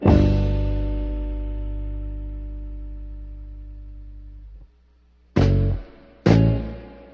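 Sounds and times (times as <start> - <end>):
jazz guitar loop: 0.0 - 4.6, 5.3 - 7.1.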